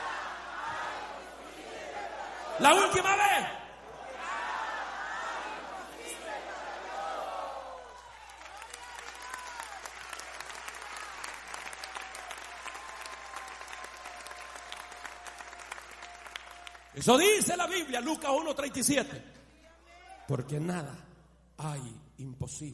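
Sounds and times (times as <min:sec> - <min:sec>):
large audience shouting a phrase together: 0:00.0 - 0:08.2
speech: 0:02.6 - 0:03.6, 0:17.0 - 0:19.4, 0:20.3 - 0:22.7
scattered cheering: 0:04.0 - 0:17.7
audience applause: 0:07.6 - 0:17.4.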